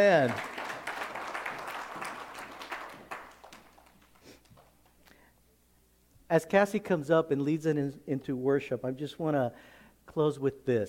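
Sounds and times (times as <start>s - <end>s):
speech: 0.0s - 0.5s, 6.3s - 10.8s
audience applause: 0.0s - 4.8s.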